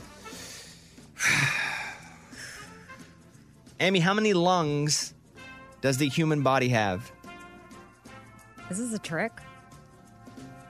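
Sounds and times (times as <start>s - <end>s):
deep breath during a trivia game: 0.0s - 3.2s
speech: 3.8s - 5.2s, 5.8s - 7.2s, 8.7s - 9.5s.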